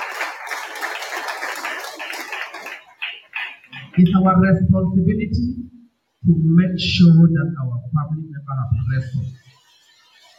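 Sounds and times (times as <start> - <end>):
audience clapping: 0.0 - 4.0
speech: 4.0 - 9.4.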